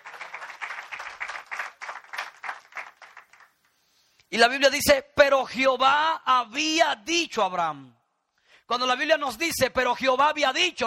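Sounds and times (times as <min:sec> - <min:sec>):
audience applause: 0:00.0 - 0:03.6
speech: 0:04.3 - 0:08.0, 0:08.7 - 0:10.8.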